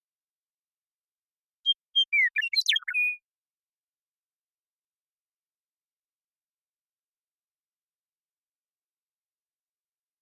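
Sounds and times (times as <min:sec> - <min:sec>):
Western meadowlark song: 0:01.6 - 0:03.3.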